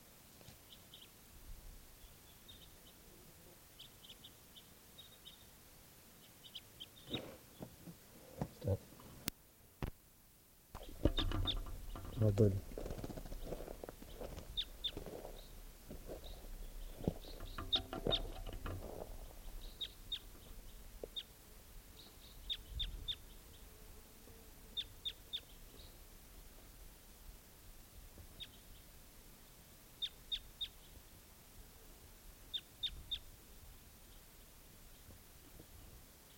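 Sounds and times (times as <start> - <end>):
bird chirping: 0.6 - 1.2, 1.9 - 3.1, 3.7 - 5.6, 6.2 - 7.9, 10.8 - 23.8, 24.8 - 26.0, 28.3 - 28.9, 30.0 - 31.0, 32.5 - 33.3
clip-clop-like knocks: 10.8 - 15.3, 17.0 - 19.4
speech: 12.3 - 12.7.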